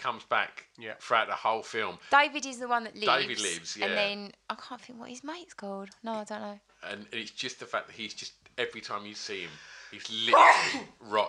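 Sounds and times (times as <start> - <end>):
speech: 0.0 - 11.2
sneeze: 10.2 - 11.0.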